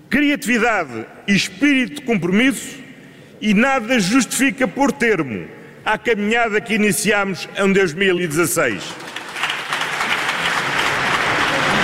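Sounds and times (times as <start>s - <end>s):
speech: 0.1s - 9.1s
applause from the PS parliamentary benches: 8.9s - 11.8s.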